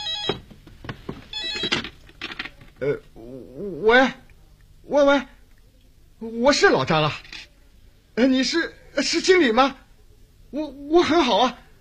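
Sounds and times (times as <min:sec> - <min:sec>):
telephone ringing: 0:00.0 - 0:00.4, 0:01.3 - 0:02.0
speech: 0:02.8 - 0:04.2, 0:04.9 - 0:05.4, 0:06.2 - 0:07.3, 0:08.2 - 0:09.8, 0:10.5 - 0:11.6.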